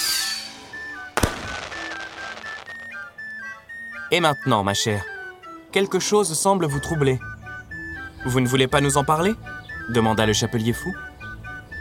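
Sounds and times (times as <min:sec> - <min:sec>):
cake bursting with a firework-like bang: 0:01.2 - 0:03.1
fizzing crackle of sparks: 0:01.2 - 0:03.1
speech: 0:04.1 - 0:05.1, 0:05.7 - 0:07.3, 0:08.2 - 0:11.0.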